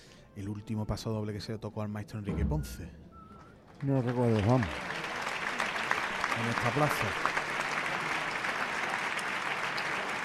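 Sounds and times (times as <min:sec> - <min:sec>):
speech: 0:00.4 - 0:03.1, 0:03.8 - 0:04.9, 0:06.4 - 0:07.4
crowd ovation applause at a bullring: 0:03.4 - 0:10.2.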